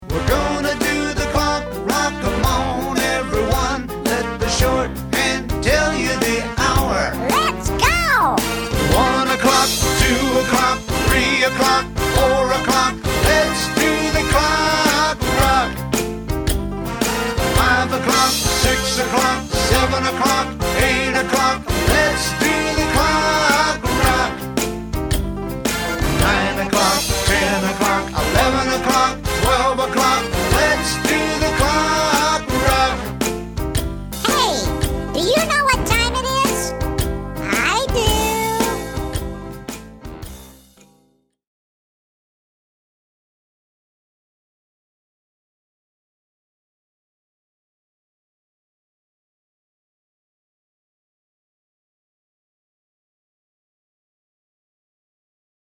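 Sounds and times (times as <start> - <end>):
rock music: 0.1 - 40.7.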